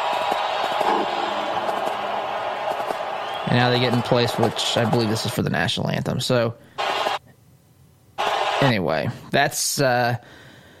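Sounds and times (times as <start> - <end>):
stadium crowd cheering: 0.0 - 5.5, 6.8 - 7.2, 8.2 - 8.8
speech: 3.5 - 6.8, 8.6 - 10.4.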